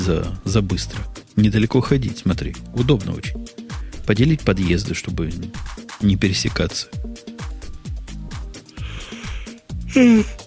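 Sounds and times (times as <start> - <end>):
speech: 0.0 - 7.2, 10.0 - 10.4
yawn: 8.9 - 10.4.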